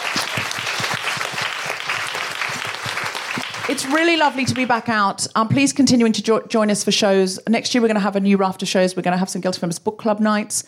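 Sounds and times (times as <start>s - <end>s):
crowd clapping: 0.0s - 5.0s
speech: 3.7s - 10.6s.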